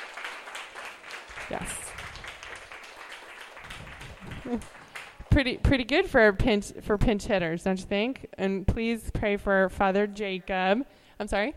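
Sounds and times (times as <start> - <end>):
crowd round of applause: 0.0 - 5.4
speech: 1.5 - 1.9, 4.5 - 11.5
laughter: 4.2 - 4.9.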